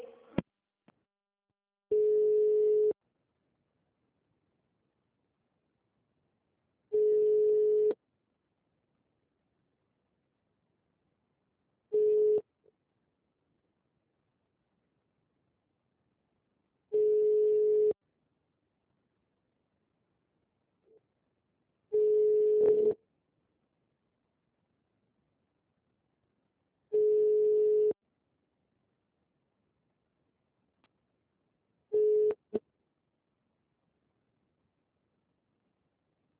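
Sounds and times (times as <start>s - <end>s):
unanswered phone call ringback tones: 1.9s - 3.0s, 7.0s - 8.0s, 12.0s - 12.4s, 17.0s - 17.9s, 22.0s - 23.0s, 27.0s - 28.0s.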